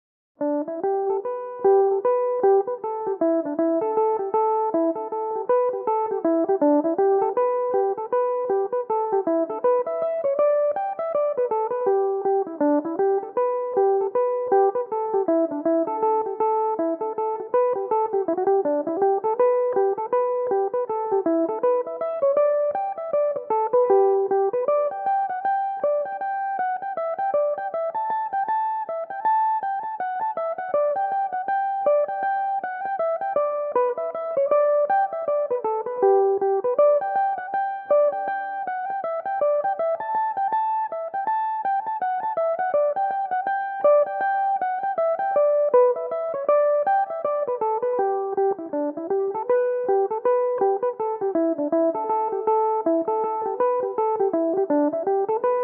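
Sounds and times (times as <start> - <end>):
Irish mandolin playing a reel in G major: 0.6 - 55.6.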